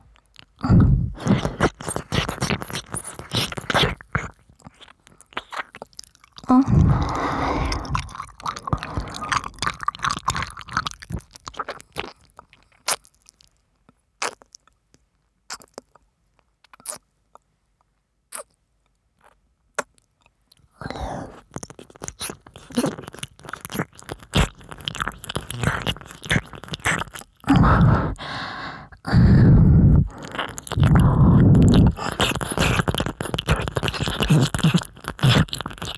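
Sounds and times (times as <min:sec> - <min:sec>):
right ear licking: 0:00.3 - 0:12.1, 0:20.8 - 0:35.9.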